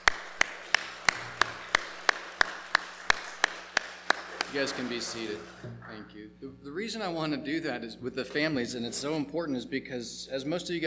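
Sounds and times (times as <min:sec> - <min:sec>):
audience applause: 0:00.0 - 0:05.7
speech: 0:04.5 - 0:10.8.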